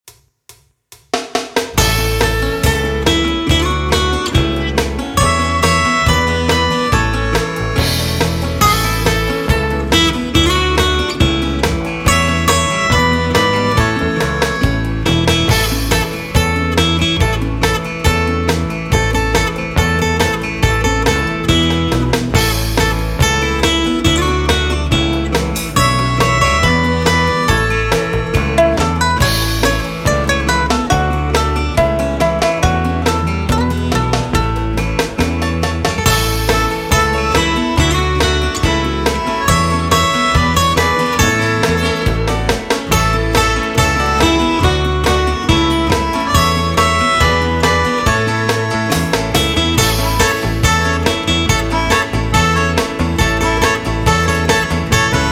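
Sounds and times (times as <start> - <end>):
ukulele: 1.7 - 55.3.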